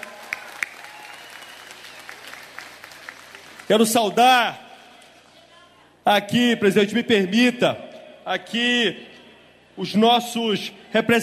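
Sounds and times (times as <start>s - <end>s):
audience applause: 0.0s - 3.9s
speech: 3.7s - 4.6s, 6.1s - 9.1s, 9.8s - 11.2s.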